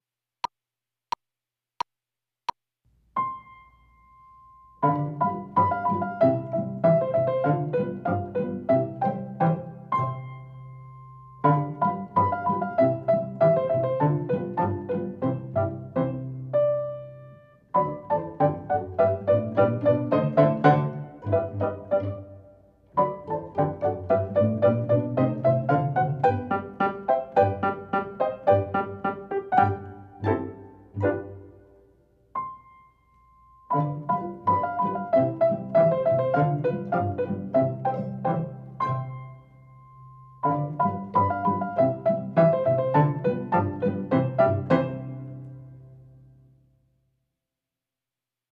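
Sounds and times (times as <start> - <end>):
pizzicato polka: 4.8 - 17.0, 17.7 - 31.9, 33.7 - 39.4, 40.4 - 45.8.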